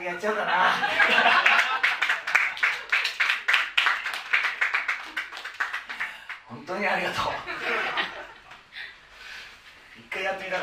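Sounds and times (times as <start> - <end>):
speech: 0.0 - 1.5, 6.7 - 7.9, 10.2 - 10.6
laughter: 0.5 - 2.3, 7.2 - 8.6
audience rhythmic hand clapping: 1.0 - 6.5.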